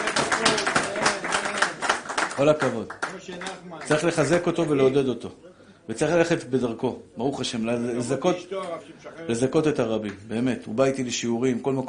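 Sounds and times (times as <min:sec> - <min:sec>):
applause, hand clapping: 0:00.0 - 0:04.8
speech: 0:02.4 - 0:11.8.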